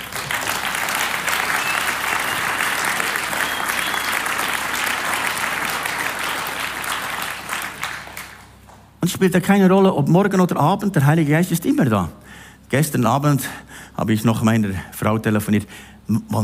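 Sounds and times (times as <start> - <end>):
large audience applause: 0.0 - 8.6
speech: 9.1 - 16.4.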